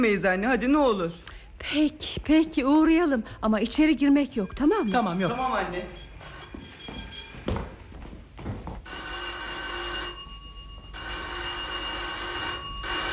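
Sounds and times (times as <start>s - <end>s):
speech: 0.0s - 6.0s
doorbell ringing: 4.4s - 7.6s, 8.9s - 13.1s.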